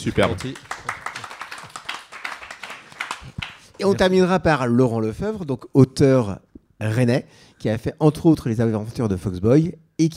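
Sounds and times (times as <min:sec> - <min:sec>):
speech: 0:00.0 - 0:00.7, 0:03.8 - 0:10.1
audience applause: 0:00.0 - 0:03.8.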